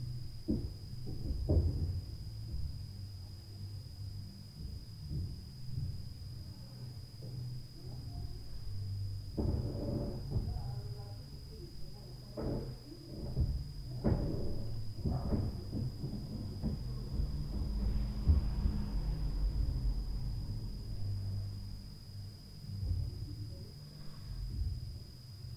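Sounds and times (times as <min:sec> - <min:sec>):
night noise from upstairs: 0:00.0 - 0:25.5.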